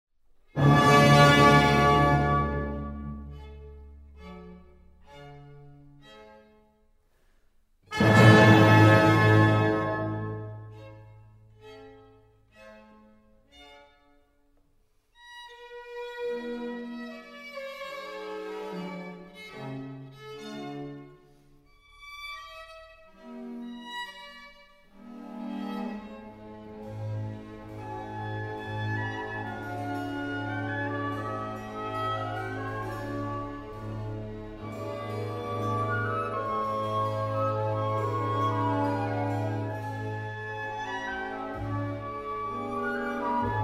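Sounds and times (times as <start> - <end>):
overture in D major: 0.5 - 3.6, 7.9 - 10.8, 25.9 - 43.6.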